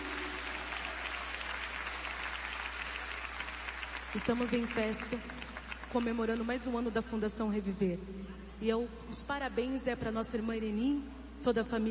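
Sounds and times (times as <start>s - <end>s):
audience applause: 0.0s - 6.0s
speech: 4.1s - 11.9s.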